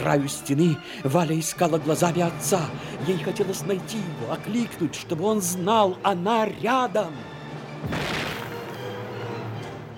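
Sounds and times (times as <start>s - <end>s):
speech: 0.0s - 8.2s
grenade bursting in a wartime battle: 7.8s - 8.8s.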